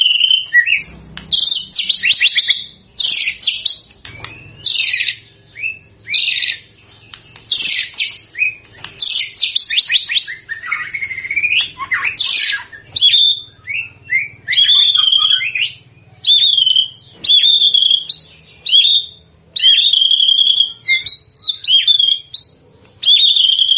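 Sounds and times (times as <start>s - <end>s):
white-rumped shama whistled song: 0.0s - 23.7s.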